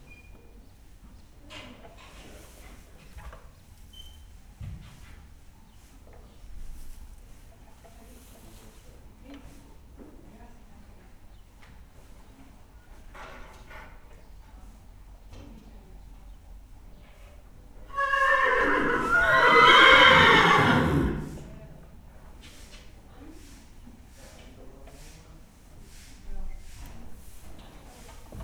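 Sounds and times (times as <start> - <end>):
background noise in Hortobágy National Park: 0.0 - 28.4
horse neighing in Hortobágy National Park: 17.9 - 21.6.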